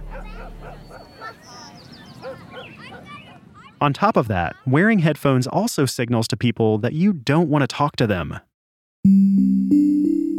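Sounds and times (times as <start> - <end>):
neighbor's dog barking: 0.0 - 3.4
speech: 3.8 - 10.3.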